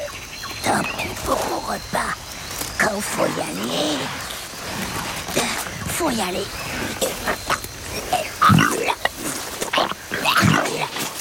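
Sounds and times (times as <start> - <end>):
speech: 0.8 - 2.2, 2.8 - 7.4
Komodo dragon regurgitating a goat: 2.8 - 11.1.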